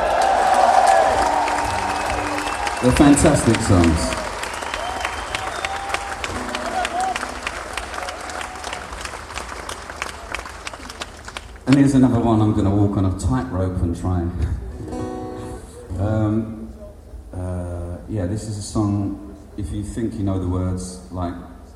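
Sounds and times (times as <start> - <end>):
audience applause in a tent: 0.0 - 12.1
speech: 2.8 - 4.2, 11.7 - 14.6, 16.0 - 16.6, 18.1 - 21.5.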